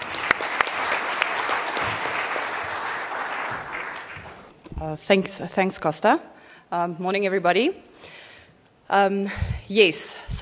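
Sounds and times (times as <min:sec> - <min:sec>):
audience applause: 0:00.0 - 0:04.6
speech: 0:04.8 - 0:08.2, 0:08.9 - 0:10.4.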